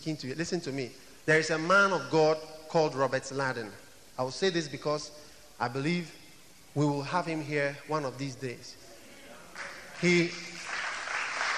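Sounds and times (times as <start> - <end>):
speech: 0.0 - 6.2, 6.8 - 8.8, 9.6 - 10.5
audience clapping: 9.5 - 11.5.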